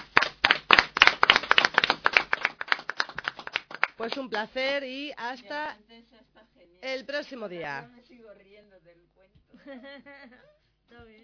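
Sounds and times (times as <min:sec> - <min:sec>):
applause: 0:00.0 - 0:04.5
speech: 0:04.0 - 0:06.1, 0:06.8 - 0:09.0, 0:09.6 - 0:11.2.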